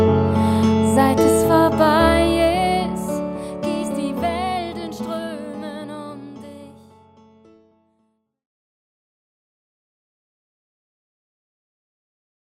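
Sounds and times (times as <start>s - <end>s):
piano piece: 0.0s - 8.0s.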